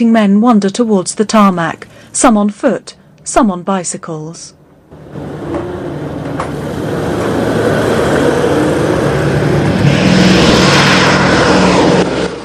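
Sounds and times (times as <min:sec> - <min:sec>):
speech: 0:00.0 - 0:05.7
B-17 bomber planes coming in to land: 0:04.9 - 0:12.4.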